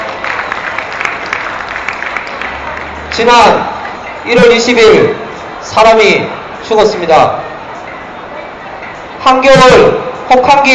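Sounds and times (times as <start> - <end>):
crowd clapping: 0.0 - 4.0
speech: 3.2 - 7.4, 9.2 - 10.7.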